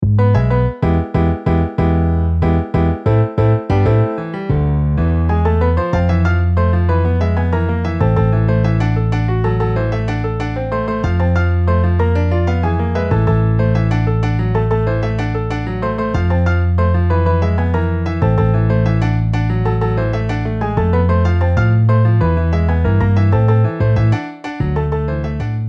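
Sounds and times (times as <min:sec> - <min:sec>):
MIDI piano and bass: 0:00.0 - 0:25.6.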